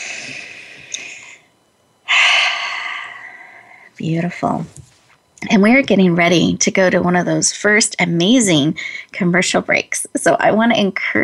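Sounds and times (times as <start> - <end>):
deep breathing during a guided breathing moment: 0.0 - 1.5, 2.1 - 4.0
speech: 4.0 - 11.2.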